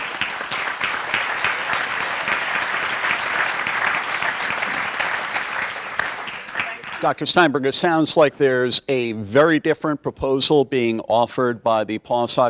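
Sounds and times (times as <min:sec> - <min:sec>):
round of applause for panel: 0:00.0 - 0:07.3
speech: 0:07.0 - 0:12.4.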